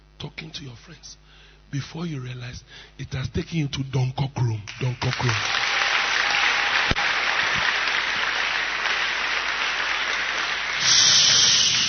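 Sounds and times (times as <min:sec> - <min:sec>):
speech: 0:00.2 - 0:05.7
audience clapping: 0:04.6 - 0:11.8.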